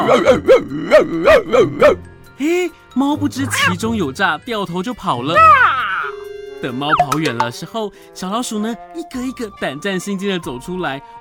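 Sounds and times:
person imitating dog barking: 0.0 - 2.7, 3.4 - 3.8, 5.4 - 6.1
speech: 0.1 - 5.7, 6.6 - 11.1.

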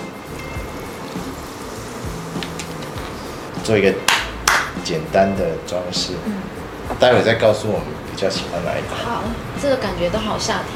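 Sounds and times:
sparkling water pouring: 0.1 - 3.6
speech: 3.7 - 4.2, 4.8 - 10.7.

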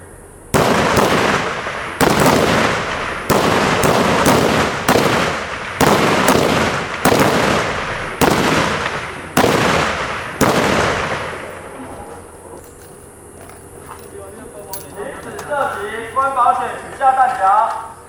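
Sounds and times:
rifle shots at a reservist rifle-shooting training camp at a military base in Hualien: 0.5 - 11.7
voices: 11.5 - 18.0.

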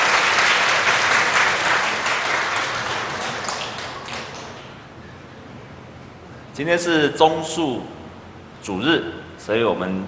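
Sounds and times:
crowd audience applause: 0.0 - 4.8
speech: 6.6 - 8.0, 8.6 - 10.0.

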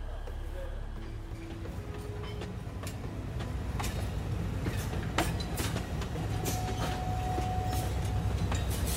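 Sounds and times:
forest railway train rattling along tracks: 0.0 - 8.9
train wheel squeal: 4.6 - 8.9.

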